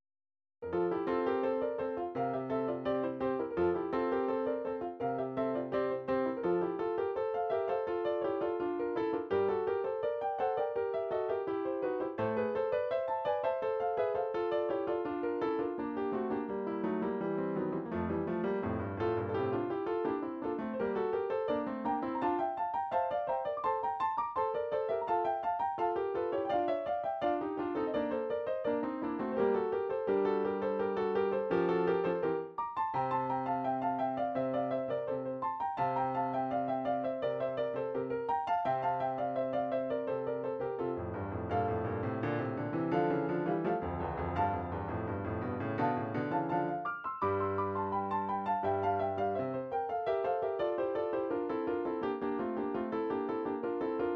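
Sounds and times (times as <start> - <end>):
midi piano studies: 0.6 - 54.1.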